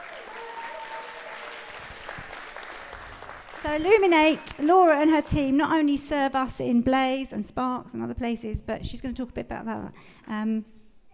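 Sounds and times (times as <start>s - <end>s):
whoops and cheers: 0.0s - 2.2s
audience applause: 0.0s - 4.7s
speech: 3.6s - 10.8s.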